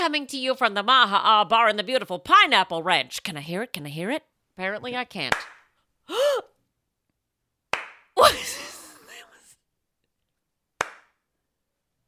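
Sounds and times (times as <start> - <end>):
speech: 0.0 - 6.5, 8.2 - 8.8
slow clap: 7.7 - 8.1, 10.8 - 11.2.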